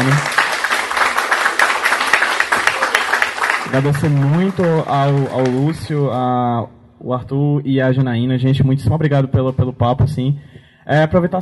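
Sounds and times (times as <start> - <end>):
applause for the guests: 0.0 - 6.2
speech: 3.8 - 11.4.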